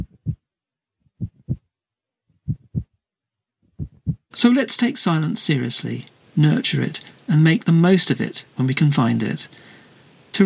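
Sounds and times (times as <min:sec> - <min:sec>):
human heartbeat: 0:00.0 - 0:00.5, 0:01.2 - 0:01.7, 0:02.4 - 0:03.0, 0:03.7 - 0:04.3
speech: 0:04.4 - 0:09.7.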